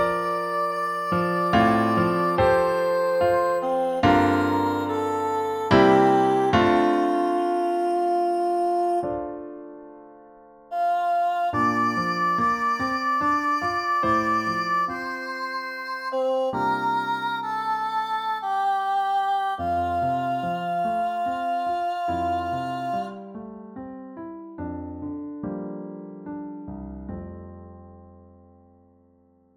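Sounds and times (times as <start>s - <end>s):
soprano singing: 0.0s - 9.8s, 10.7s - 23.4s
piano accompaniment: 0.0s - 29.5s.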